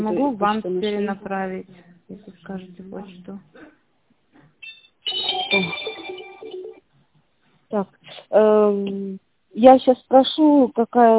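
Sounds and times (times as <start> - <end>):
speech: 0.0 - 3.8, 5.5 - 6.0, 7.7 - 11.1
telephone ringtone: 4.6 - 6.8.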